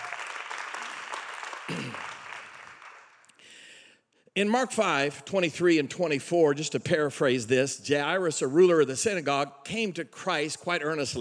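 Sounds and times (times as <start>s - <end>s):
audience clapping: 0.0s - 3.4s
speech: 1.7s - 2.1s, 4.4s - 11.2s.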